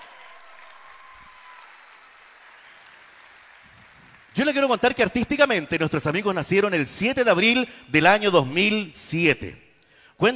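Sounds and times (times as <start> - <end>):
audience applause: 0.0 - 4.7
speech: 4.4 - 9.6, 10.2 - 10.3.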